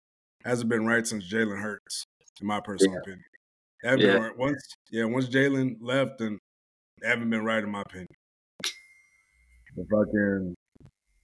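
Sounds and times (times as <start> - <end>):
speech: 0.4 - 6.4, 7.0 - 8.8, 9.8 - 10.6
new computer notification ding: 4.0 - 4.2.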